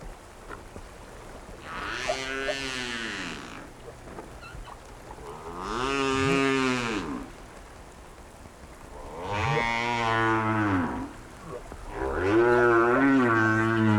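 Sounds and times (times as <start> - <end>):
whale chirps and grunts: 1.6 - 7.3, 9.1 - 13.9.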